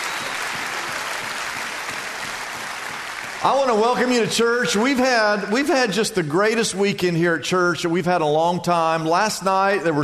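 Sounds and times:
audience applauding: 0:00.0 - 0:04.5
speech: 0:03.4 - 0:10.0.

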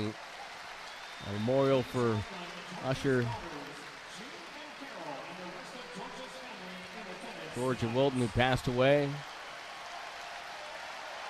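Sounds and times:
speech: 0:00.0 - 0:00.3, 0:01.2 - 0:03.5, 0:07.6 - 0:09.3
arena crowd standing ovation: 0:00.0 - 0:11.2.

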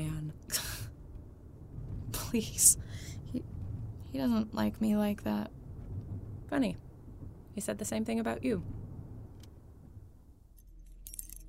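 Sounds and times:
low rumble: 0:00.0 - 0:11.4
speech: 0:02.3 - 0:05.6, 0:06.5 - 0:06.9, 0:07.6 - 0:08.8
keys jingling while fumbling with a door lock: 0:10.5 - 0:11.4.

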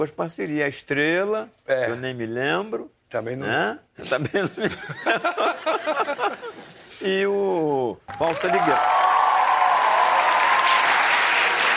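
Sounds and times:
speech: 0:00.0 - 0:09.1
laughter: 0:04.1 - 0:06.9
audience applause: 0:08.1 - 0:11.7.

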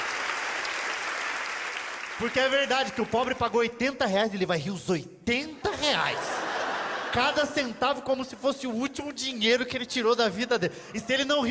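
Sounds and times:
audience applause: 0:00.0 - 0:03.0
speech: 0:02.2 - 0:06.4, 0:07.2 - 0:11.4
laughter: 0:05.6 - 0:07.8.

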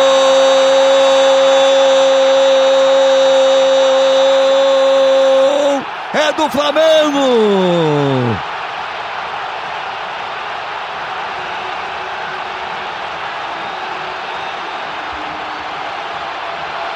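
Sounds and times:
huge football stadium crowd cheering a goal: 0:00.0 - 0:16.9
speech: 0:06.5 - 0:08.1.

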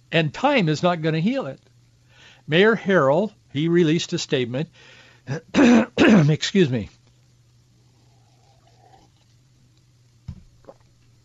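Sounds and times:
low electrical hum: 0:00.0 - 0:11.2
speech: 0:00.1 - 0:01.7, 0:02.5 - 0:07.0
person sipping water: 0:08.0 - 0:09.4, 0:10.6 - 0:11.1.

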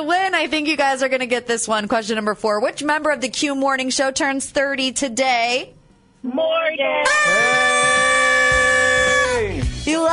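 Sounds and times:
speech: 0:00.0 - 0:08.1
quiz timer buzzer: 0:07.0 - 0:09.5.

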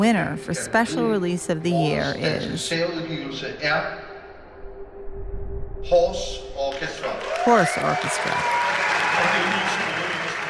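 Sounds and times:
speech: 0:00.0 - 0:04.1, 0:05.8 - 0:09.9
ferocious applause from an awards audience: 0:06.7 - 0:10.4.

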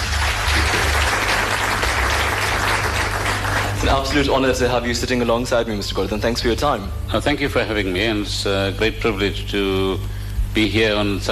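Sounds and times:
crowd applauding: 0:00.0 - 0:04.8
speech: 0:03.9 - 0:11.3.

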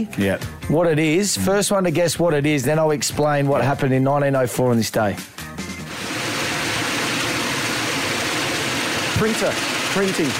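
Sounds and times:
speech: 0:00.0 - 0:05.6, 0:09.2 - 0:10.3
propeller aeroplane engine: 0:05.9 - 0:10.3.

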